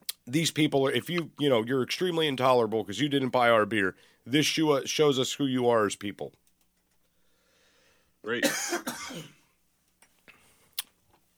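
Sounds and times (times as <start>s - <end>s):
faint short clicks and throat sounds: 0.0s - 0.3s
speech: 0.3s - 6.4s, 8.2s - 9.4s
person coughing after choking on spit: 8.4s - 9.4s.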